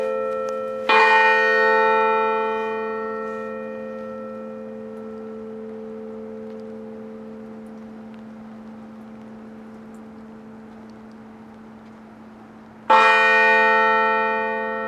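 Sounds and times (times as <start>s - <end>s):
Angelus bells ringing: 0.0s - 7.1s, 12.9s - 14.8s.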